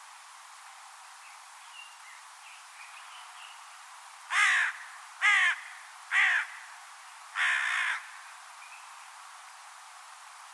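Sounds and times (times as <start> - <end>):
low hiss: 0.0 - 10.5
bird cawing: 4.3 - 6.8, 7.4 - 8.3.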